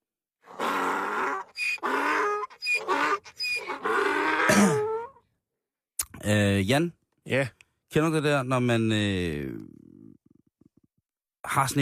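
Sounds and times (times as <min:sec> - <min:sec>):
donkey braying: 0:00.5 - 0:05.2
speech: 0:06.3 - 0:09.8, 0:11.5 - 0:11.8.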